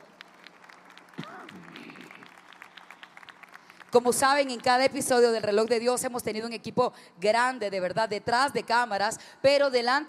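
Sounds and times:
crowd applauding: 0:00.0 - 0:05.0
speech: 0:03.9 - 0:10.0.

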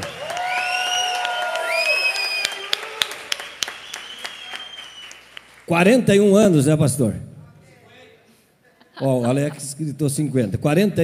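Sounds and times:
crowd shouting and whooping: 0:00.0 - 0:03.7
scattered audience claps: 0:00.0 - 0:05.7
speech: 0:05.7 - 0:07.3, 0:09.0 - 0:11.0.

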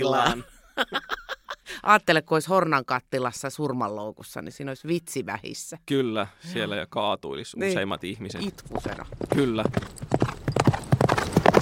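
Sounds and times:
speech: 0:00.0 - 0:01.2, 0:01.8 - 0:10.0
laughter: 0:00.0 - 0:01.7
horse hooves clip-clopping: 0:08.4 - 0:11.5.

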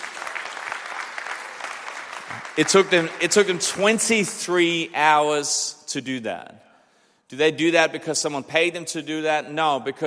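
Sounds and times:
crowd applauding: 0:00.0 - 0:04.6
speech: 0:02.3 - 0:06.7, 0:07.3 - 0:10.0.

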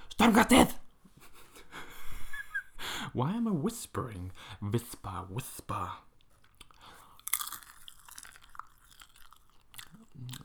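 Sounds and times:
speech: 0:00.2 - 0:00.8, 0:03.1 - 0:06.1, 0:10.2 - 0:10.4
chewing kettle corn popcorn: 0:06.2 - 0:10.4.

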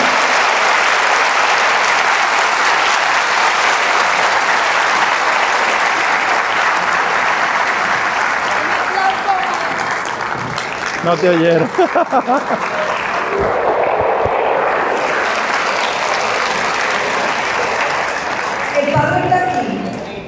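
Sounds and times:
audience applause: 0:00.0 - 0:20.0
speech: 0:11.1 - 0:13.6
laughter: 0:11.4 - 0:13.1.

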